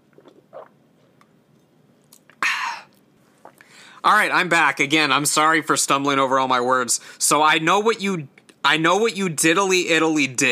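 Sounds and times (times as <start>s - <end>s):
person sipping water: 0.0s - 3.8s
speech: 4.0s - 10.5s.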